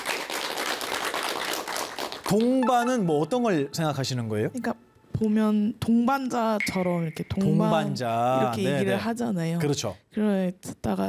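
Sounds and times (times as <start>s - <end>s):
audience applause after a request to clap: 0.0s - 2.5s
speech: 2.3s - 11.0s.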